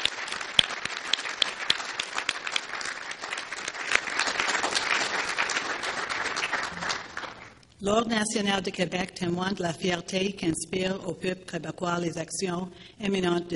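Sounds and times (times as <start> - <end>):
audience applause: 0.0 - 7.6
speech: 7.8 - 13.5.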